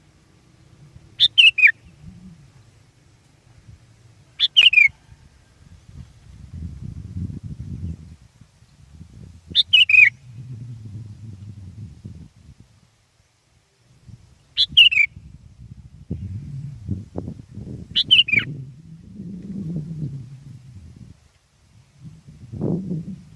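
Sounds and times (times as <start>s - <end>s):
low rumble: 0.0s - 12.9s, 15.1s - 23.3s
sooty-headed bulbul song: 0.6s - 3.0s, 4.3s - 5.0s, 9.5s - 11.9s, 14.5s - 15.2s, 17.8s - 21.0s.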